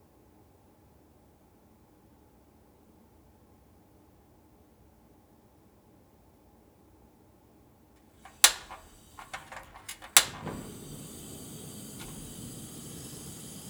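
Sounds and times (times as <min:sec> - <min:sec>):
scraping off salt: 0:08.2 - 0:13.6
seawater boiling down in salt making: 0:08.2 - 0:13.6.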